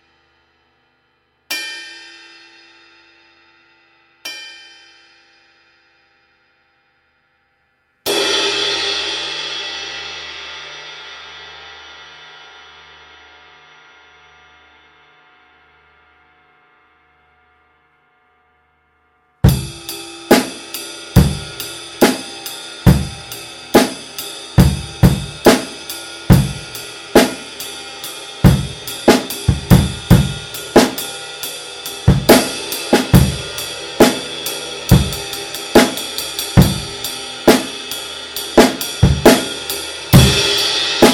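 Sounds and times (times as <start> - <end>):
ride cymbal rock pattern: 19.4 - 41.1.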